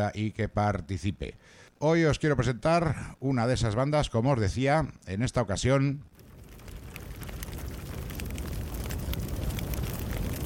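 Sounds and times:
speech: 0:00.0 - 0:06.1
fire crackling: 0:06.1 - 0:10.4.

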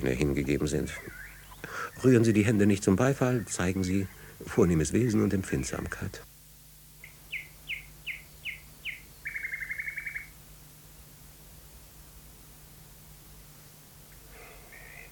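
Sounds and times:
nightingale song played from loudspeakers hung in trees and bushes: 0:00.0 - 0:06.3, 0:06.9 - 0:11.2, 0:13.1 - 0:15.1
speech: 0:00.0 - 0:06.3.

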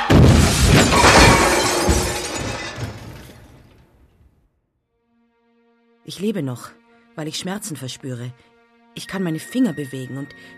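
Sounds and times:
splintering debris from car crash into trees: 0:00.1 - 0:03.9
car crash into trees, shattering glass: 0:00.1 - 0:04.0
speech: 0:06.2 - 0:10.5.

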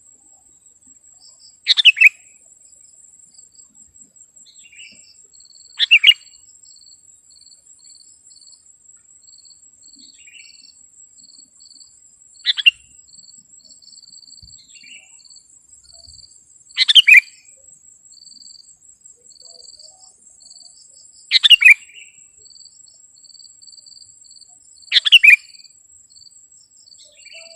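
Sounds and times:
insect hum: 0:00.0 - 0:27.5
sooty-headed bulbul song: 0:01.7 - 0:02.3, 0:05.8 - 0:06.4, 0:16.8 - 0:17.4, 0:24.9 - 0:25.5, 0:27.0 - 0:27.5.

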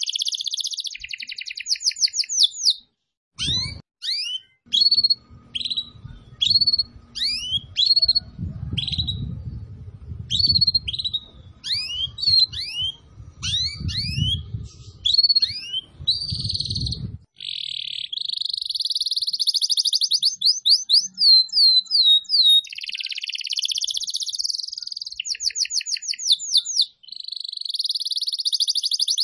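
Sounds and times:
Atlantic canary singing trills: 0:00.0 - 0:02.8, 0:03.4 - 0:29.2
low rumble: 0:05.2 - 0:15.2, 0:15.8 - 0:17.3.

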